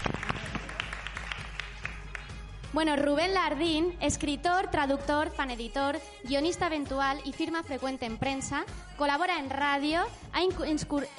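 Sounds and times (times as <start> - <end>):
audience applause: 0.0 - 2.3
speech: 2.7 - 11.1.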